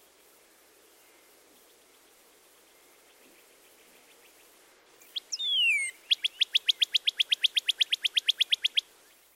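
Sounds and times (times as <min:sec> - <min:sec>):
Northern Cardinal whistled song: 0:05.1 - 0:08.8.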